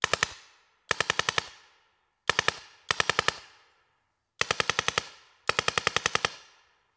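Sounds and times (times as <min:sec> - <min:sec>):
paintball gun: 0:00.0 - 0:01.6, 0:02.3 - 0:03.5, 0:04.4 - 0:06.5.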